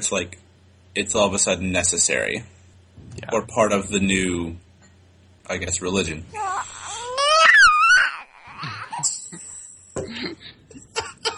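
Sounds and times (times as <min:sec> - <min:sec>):
speech: 0:00.0 - 0:04.6, 0:05.5 - 0:06.6
child wailing and sobbing: 0:06.3 - 0:09.1.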